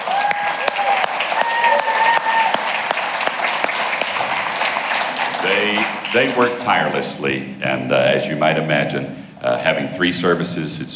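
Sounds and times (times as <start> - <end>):
whistles and cheers: 0.0 - 2.8
audience applause: 0.0 - 7.0
speech: 6.1 - 10.9.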